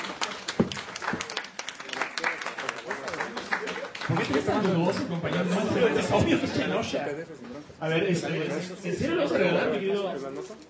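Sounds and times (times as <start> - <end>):
audience applause: 0.0 - 6.1
laughter: 4.0 - 6.9
speech: 4.1 - 10.6.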